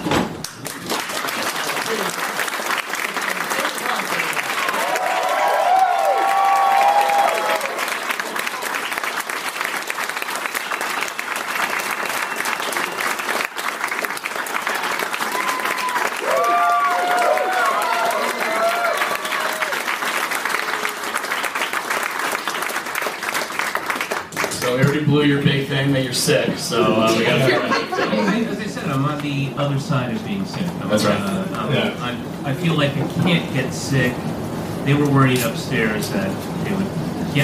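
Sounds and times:
audience clapping: 0.4 - 25.6
speech: 26.0 - 37.4
laughter: 26.7 - 29.1.

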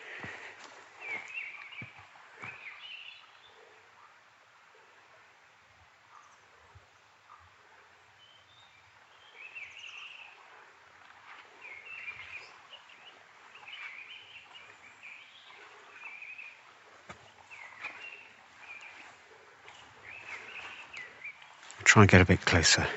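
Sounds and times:
mistle thrush song: 1.0 - 3.5, 8.2 - 10.4, 11.6 - 16.6, 17.4 - 21.7
soft rustling: 16.9 - 21.9
speech: 21.9 - 22.9.

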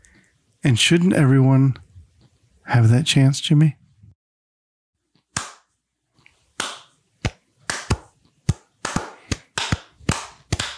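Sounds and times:
speech: 0.6 - 1.9, 2.7 - 3.8
hands clapping: 5.4 - 5.7, 6.6 - 10.7.

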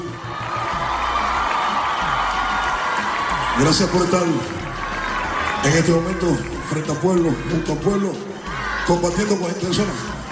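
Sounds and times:
audience applause: 0.0 - 7.8
speech: 3.6 - 4.6, 5.6 - 10.1.

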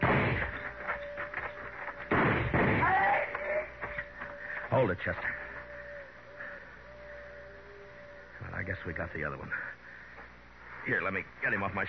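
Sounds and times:
gunfire in a radio western drama shootout: 0.0 - 0.8, 2.1 - 3.0
speech: 4.8 - 5.4, 8.8 - 9.8, 10.8 - 11.8.

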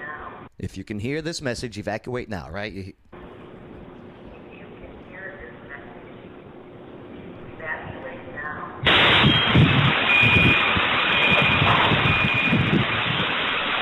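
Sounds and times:
speech: 0.6 - 3.1
car bomb explosion: 8.8 - 13.8.

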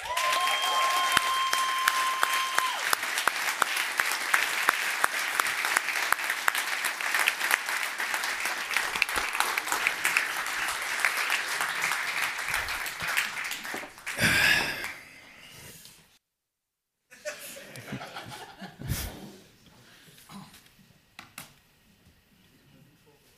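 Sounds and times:
live audience applauding: 0.0 - 15.1
laughter: 17.1 - 19.1.

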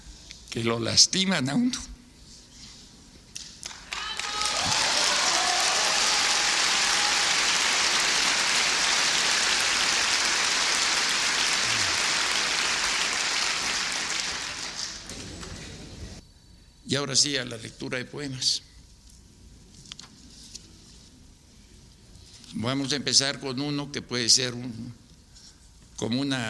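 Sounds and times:
speech: 0.5 - 1.9, 16.9 - 18.7, 22.6 - 25.0, 26.0 - 26.4
applause: 3.6 - 16.0.

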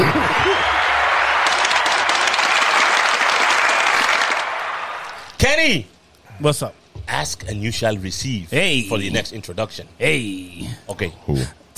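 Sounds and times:
whoops and cheers: 0.0 - 5.3
crowd applause: 0.0 - 5.4
speech: 5.5 - 11.7.

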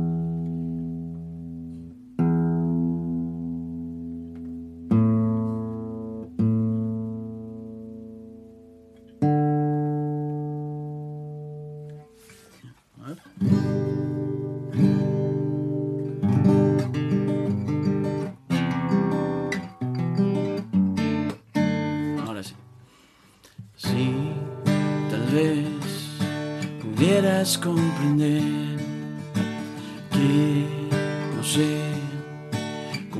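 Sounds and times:
guitar being tuned with a phone: 0.0 - 33.1.

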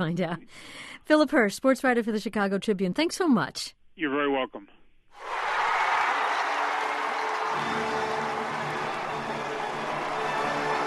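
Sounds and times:
speech: 0.0 - 5.3
Trafalgar Square crowd cheering London winning the 2012 Summer Olympics: 5.2 - 10.8.

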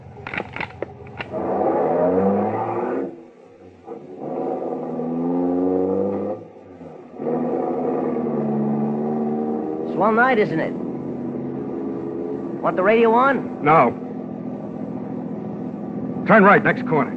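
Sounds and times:
taxi cab engine droning as it drives: 0.0 - 17.1
sharp clicks: 0.2 - 1.4
speech: 10.0 - 10.8, 12.6 - 14.0, 16.3 - 17.1.

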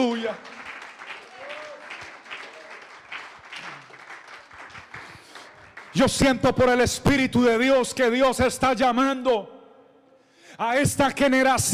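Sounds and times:
speech: 0.0 - 0.6, 6.0 - 9.6, 10.6 - 11.7
applause: 0.0 - 7.2.

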